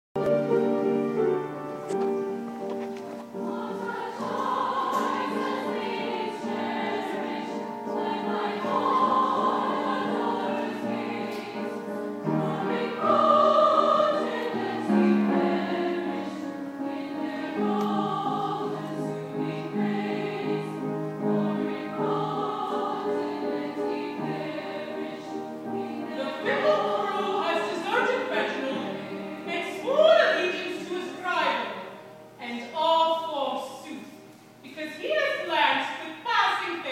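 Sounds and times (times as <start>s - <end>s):
mezzo-soprano singing: 0.2s - 36.8s
opera soprano singing: 3.4s - 31.9s.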